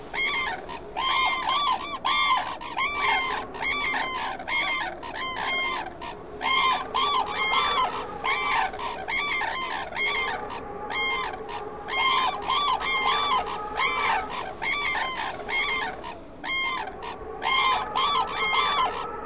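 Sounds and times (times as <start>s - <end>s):
Japanese crane calling: 0.0s - 19.2s.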